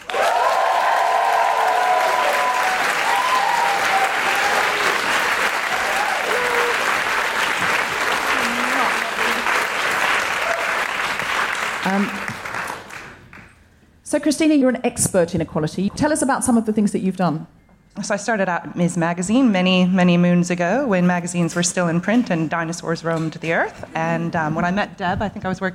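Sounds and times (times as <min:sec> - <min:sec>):
audience cheering and whooping at a live feminist event: 0:00.0 - 0:11.3
audience applause at a live feminist event: 0:00.0 - 0:13.5
speech: 0:14.1 - 0:25.7.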